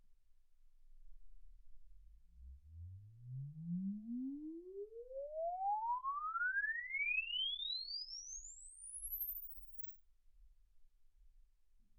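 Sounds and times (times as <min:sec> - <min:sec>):
exponential sine sweep from 10 Hz to 24 kHz: 0:02.7 - 0:09.9.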